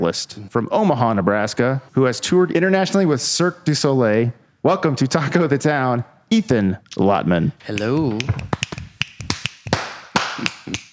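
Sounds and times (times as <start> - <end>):
speech: 0.0 - 8.6
crowd snapping fingers: 7.7 - 10.9
handclaps: 7.7 - 10.9.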